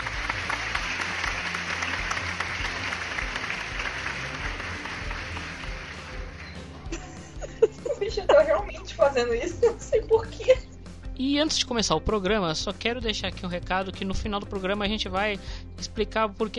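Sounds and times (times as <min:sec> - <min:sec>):
applause: 0:00.0 - 0:07.1
laughter: 0:00.6 - 0:10.6
speech: 0:08.2 - 0:16.5.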